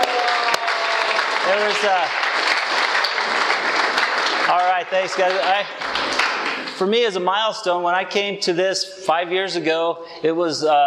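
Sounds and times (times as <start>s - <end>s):
person cheering: 0.0s - 2.0s
crowd applause: 0.0s - 7.3s
speech: 1.5s - 2.2s, 4.5s - 6.2s, 6.8s - 10.8s.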